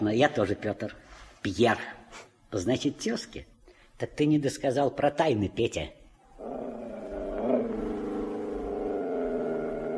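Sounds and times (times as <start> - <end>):
speech: 0.0 - 6.6
big dog roaring like a lion in an audio drama: 6.4 - 9.9.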